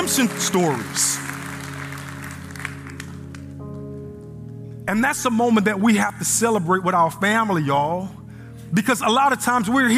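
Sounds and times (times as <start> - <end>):
audience applause: 0.0 - 3.5
sustained organ-like chords: 0.0 - 9.9
speech: 0.1 - 1.3, 4.9 - 9.9.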